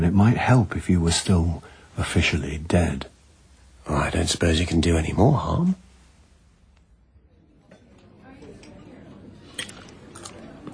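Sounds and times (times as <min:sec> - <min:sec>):
speech: 0:00.0 - 0:03.1, 0:03.9 - 0:05.8
person chewing linguine: 0:09.5 - 0:10.7.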